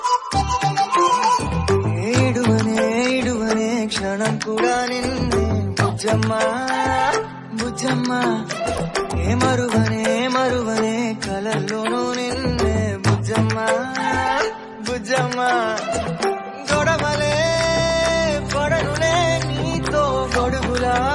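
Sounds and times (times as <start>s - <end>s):
Telugu song ringtone: 0.0s - 21.1s.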